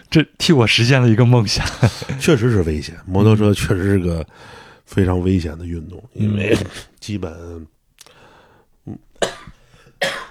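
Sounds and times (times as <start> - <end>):
speech: 0.1 - 7.8, 8.8 - 9.4, 10.0 - 10.2
person coughing: 9.1 - 10.2.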